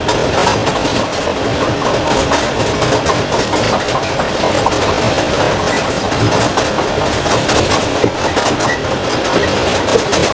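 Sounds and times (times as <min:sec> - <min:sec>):
R62 Kawasaki subway train running: 0:00.0 - 0:10.3.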